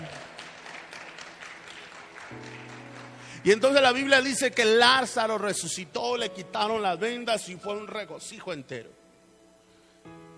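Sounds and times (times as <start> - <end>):
church congregation applauding: 0.0 - 4.5
speech: 3.4 - 9.0.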